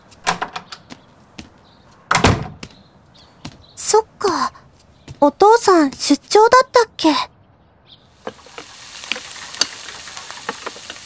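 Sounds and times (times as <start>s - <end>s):
speech: 3.9s - 4.6s, 5.2s - 7.3s
food frying for breakfast: 8.2s - 11.0s.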